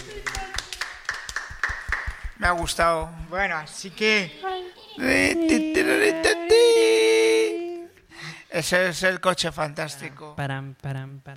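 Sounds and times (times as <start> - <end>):
applause, hands clapping: 0.0 - 3.4
speech: 2.4 - 6.8, 8.6 - 11.3.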